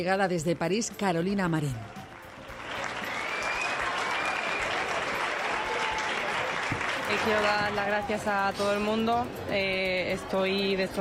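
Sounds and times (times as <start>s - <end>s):
speech: 0.0s - 2.0s, 7.1s - 11.0s
applause at an arrival from Paris: 1.8s - 7.8s.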